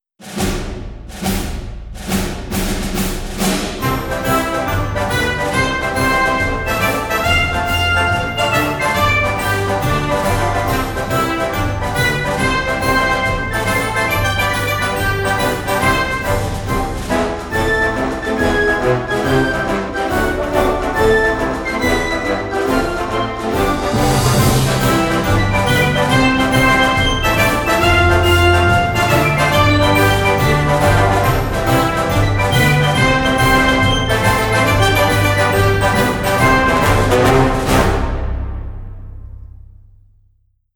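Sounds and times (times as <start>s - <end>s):
march music: 0.2s - 40.0s.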